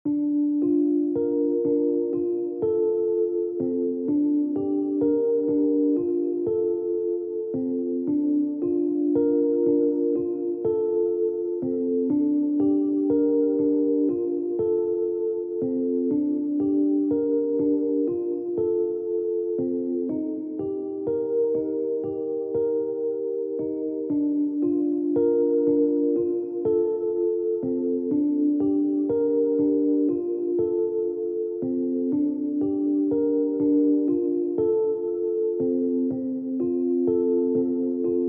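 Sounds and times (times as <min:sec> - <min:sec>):
lounge Rhodes electric piano: 0:00.0 - 0:38.2.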